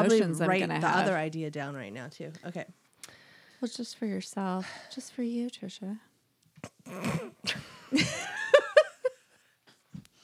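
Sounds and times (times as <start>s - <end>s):
speech: 0.0s - 2.8s, 3.6s - 8.4s
person snorting amid a fit of laughter: 6.6s - 7.7s.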